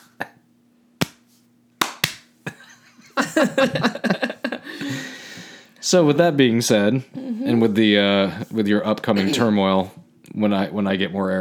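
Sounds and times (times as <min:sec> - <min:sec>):
slow clap: 0:01.0 - 0:01.2, 0:01.8 - 0:02.3
laughter: 0:02.5 - 0:05.2
speech: 0:03.4 - 0:05.0, 0:05.8 - 0:11.3.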